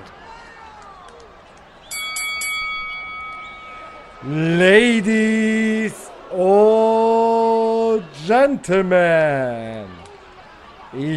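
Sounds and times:
boxing ring bell clanging: 0:01.9 - 0:05.0
speech: 0:04.2 - 0:06.9, 0:08.3 - 0:10.0, 0:10.9 - 0:11.1
man speaking loudly: 0:04.2 - 0:09.9, 0:11.0 - 0:11.1.

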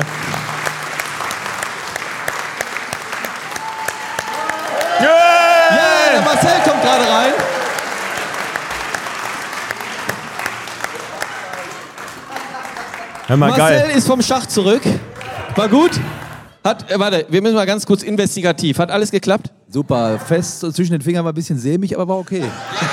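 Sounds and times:
crowd applauding: 0:00.0 - 0:16.6, 0:22.4 - 0:22.9
speech: 0:13.3 - 0:22.9
laughter: 0:22.2 - 0:22.9.

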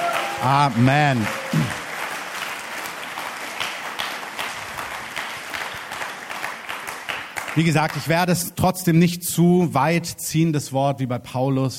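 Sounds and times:
crowd applauding: 0:00.0 - 0:08.4
speech: 0:00.4 - 0:01.8, 0:07.6 - 0:11.7.

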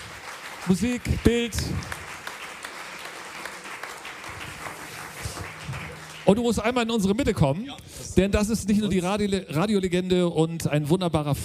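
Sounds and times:
audience applause: 0:00.0 - 0:07.6
speech: 0:00.6 - 0:02.0, 0:06.3 - 0:11.4.

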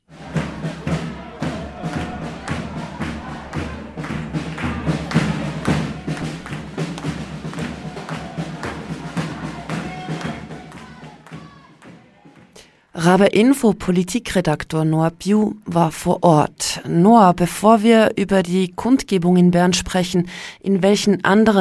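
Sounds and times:
protest crowd din at a train station: 0:00.1 - 0:12.6
speech: 0:13.1 - 0:21.5.

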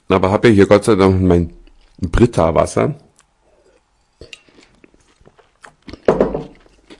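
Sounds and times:
speech: 0:00.1 - 0:03.0
biting into and chewing food: 0:01.6 - 0:02.3, 0:03.1 - 0:06.9.

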